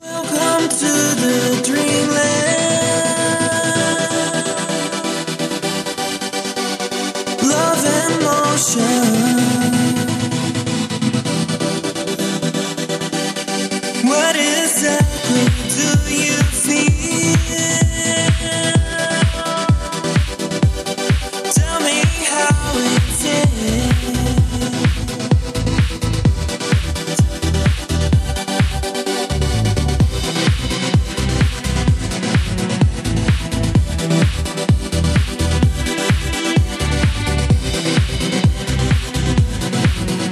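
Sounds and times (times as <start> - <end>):
chill disco music: 0.0 - 40.3.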